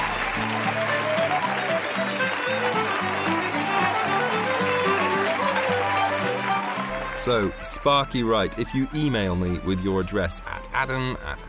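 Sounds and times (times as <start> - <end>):
crowd applause: 0.0 - 8.1
speech: 7.2 - 11.4.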